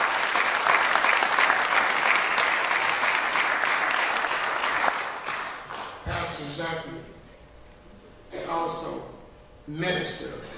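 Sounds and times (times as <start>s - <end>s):
applause for a pastor: 0.0s - 6.0s
speech: 9.7s - 10.5s.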